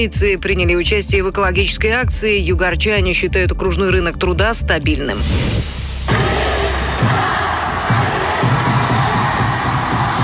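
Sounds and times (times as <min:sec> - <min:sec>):
speech: 0:00.0 - 0:06.2
low rhythmic thumps: 0:00.0 - 0:10.2
hockey fans roaring and cheering a championship: 0:06.1 - 0:10.2.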